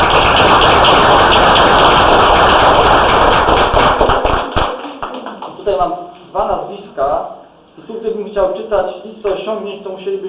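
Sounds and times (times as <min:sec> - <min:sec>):
audience applause: 0:00.0 - 0:05.6
speech: 0:07.9 - 0:10.2.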